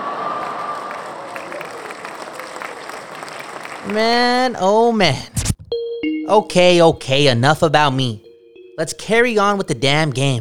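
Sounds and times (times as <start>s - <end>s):
audience applause: 0.0s - 4.4s
speech: 3.8s - 5.5s, 6.3s - 8.2s, 8.8s - 10.4s.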